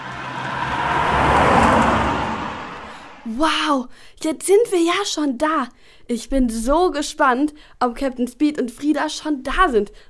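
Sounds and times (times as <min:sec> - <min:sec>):
taxi driving off: 0:00.0 - 0:03.4
speech: 0:03.4 - 0:10.0.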